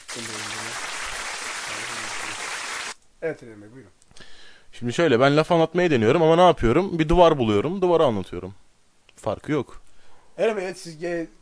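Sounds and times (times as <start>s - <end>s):
audience applause: 0.0s - 3.0s
speech: 0.2s - 0.5s, 3.2s - 4.0s, 4.7s - 8.6s, 9.2s - 9.8s, 10.4s - 11.4s.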